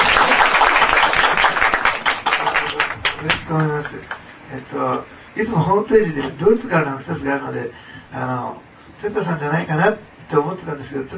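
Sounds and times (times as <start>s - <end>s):
audience applause welcoming a guest to a gathering in Nagasaki: 0.0s - 4.3s
speech: 3.5s - 11.1s.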